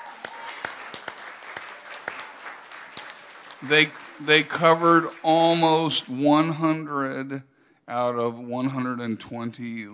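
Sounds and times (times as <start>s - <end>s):
audience applause: 0.0s - 6.6s
speech: 3.6s - 9.9s.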